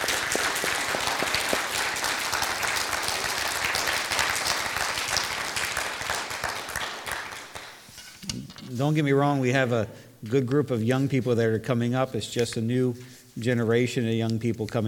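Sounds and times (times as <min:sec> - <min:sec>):
crowd applauding: 0:00.0 - 0:07.8
speech: 0:08.8 - 0:14.8.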